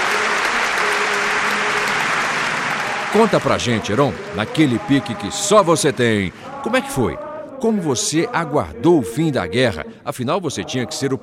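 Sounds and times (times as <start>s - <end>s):
studio audience applauding a guest onto a variety show stage: 0.0s - 7.2s
speech: 3.1s - 11.2s.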